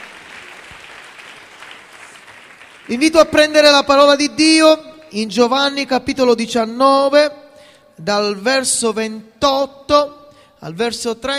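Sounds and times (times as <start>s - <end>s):
Italian church congregation applauding during a service: 0.0s - 5.2s
speech: 2.9s - 7.4s, 8.0s - 11.3s.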